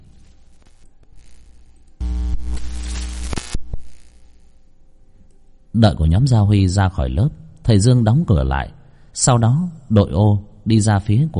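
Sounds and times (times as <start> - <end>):
classroom electric lights flickering and buzzing: 0.0 - 4.8
speech: 5.8 - 11.3.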